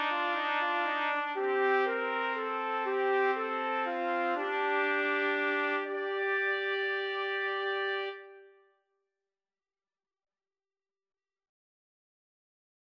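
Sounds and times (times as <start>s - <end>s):
trumpet trio playing: 0.0s - 8.5s.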